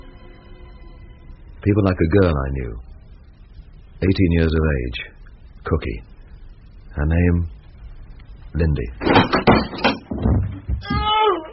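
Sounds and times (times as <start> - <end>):
speech: 1.6 - 2.9, 4.0 - 6.1, 7.0 - 7.6, 8.5 - 11.0
heavy thumps and knocks of someone falling: 9.0 - 11.1
door banging as someone falls in through it: 9.0 - 11.2.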